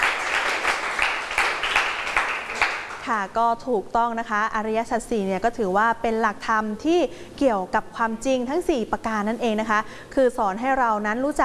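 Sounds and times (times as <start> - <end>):
students clapping for a classmate: 0.0 - 3.1
speech: 3.1 - 11.4.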